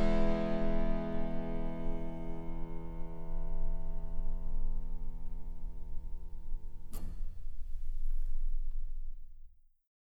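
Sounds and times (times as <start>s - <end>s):
harpsichord: 0.0s - 7.9s.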